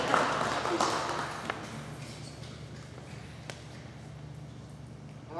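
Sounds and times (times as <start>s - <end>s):
audience applause: 0.0s - 1.6s.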